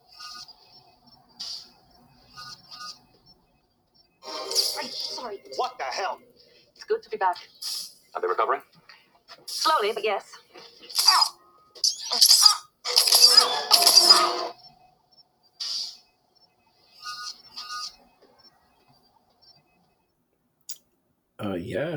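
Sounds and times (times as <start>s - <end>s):
hypospray hissing: 4.2s - 5.7s, 7.4s - 8.0s, 10.9s - 14.5s, 15.6s - 16.0s
speech: 6.9s - 7.6s, 8.2s - 8.7s, 9.6s - 10.4s, 21.7s - 21.9s.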